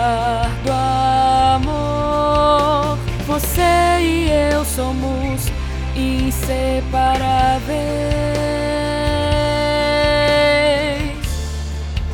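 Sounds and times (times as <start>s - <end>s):
contralto singing: 0.0s - 12.0s.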